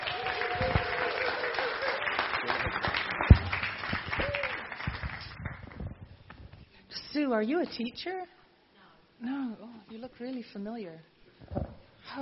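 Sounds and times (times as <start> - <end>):
audience applause welcoming a speaker at a Billericay church training gathering: 0.0 - 5.8
sharp thump: 3.3 - 3.6
speech: 7.2 - 8.4, 9.2 - 11.6.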